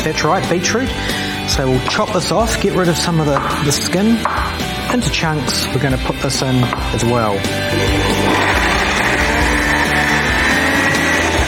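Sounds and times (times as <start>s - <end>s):
speech: 0.0s - 8.7s
blender blending a smoothie: 7.6s - 11.4s.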